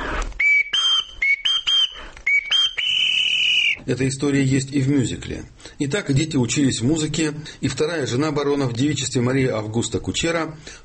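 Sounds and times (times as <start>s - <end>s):
whistled family call signal: 0.4s - 3.8s
speech: 3.9s - 10.8s.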